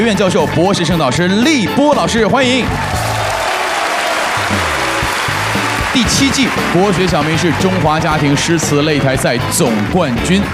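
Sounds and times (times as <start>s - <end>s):
speech: 0.0s - 3.0s, 6.0s - 10.5s
audience applause at Chinese classical poetry contest: 2.6s - 10.5s.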